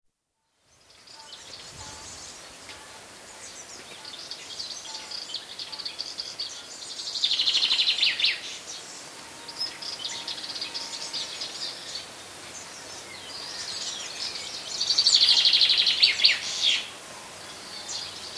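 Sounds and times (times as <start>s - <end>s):
chaffinch song on the Lassithi plateau in Greece: 0.4s - 18.3s.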